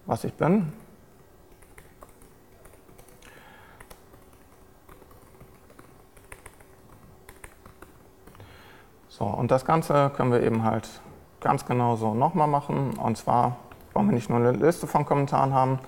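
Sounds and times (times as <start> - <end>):
speech: 0.1 - 0.8, 9.2 - 15.8
computer keyboard typing code in Visual Studio Code: 0.7 - 8.5, 12.8 - 14.4.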